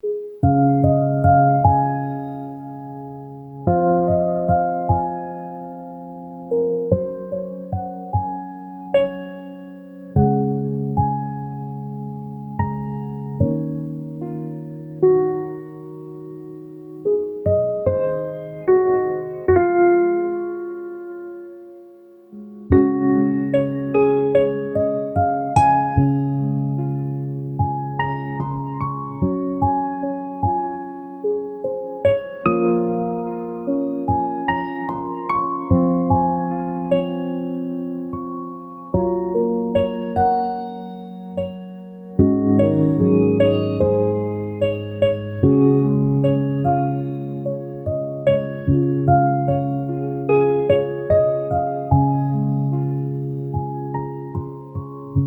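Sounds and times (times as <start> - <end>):
calm piano: 0.0 - 55.2.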